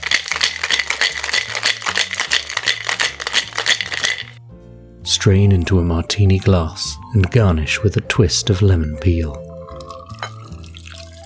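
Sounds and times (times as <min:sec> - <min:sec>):
ice rattling inside a cocktail shaker: 0:00.0 - 0:04.4, 0:09.8 - 0:11.2
low soft bass line: 0:04.3 - 0:11.0
speech: 0:05.2 - 0:09.5.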